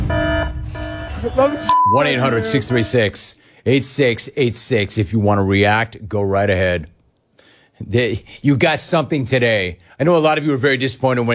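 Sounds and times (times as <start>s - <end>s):
alarm sound effect signalling an update: 0.0s - 3.1s
speech: 1.2s - 7.0s, 7.8s - 11.3s.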